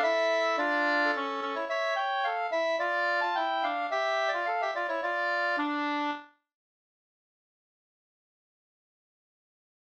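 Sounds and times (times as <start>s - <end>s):
slangpolska folk dance tune: 0.0s - 6.3s.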